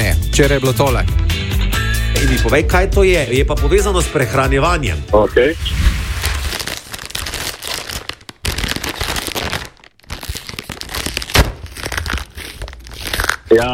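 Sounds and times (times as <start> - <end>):
speech: 0.4 - 1.2, 2.2 - 5.9, 13.5 - 13.7
chip bag opened with crinkling plastic: 5.7 - 13.7
chip bag crackling pop: 5.8 - 9.0, 11.2 - 12.2.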